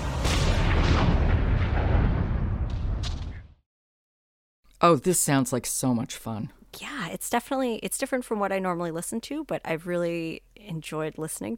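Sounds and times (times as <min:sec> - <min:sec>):
deep rolling thunder sound effect: 0:00.0 - 0:03.6
lightning cracks: 0:00.0 - 0:03.6
speech: 0:04.8 - 0:11.5.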